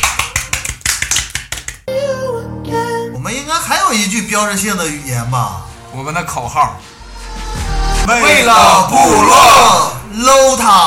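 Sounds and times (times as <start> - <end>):
audience clapping: 0.0 - 1.9
speech: 3.7 - 6.9, 8.1 - 10.8.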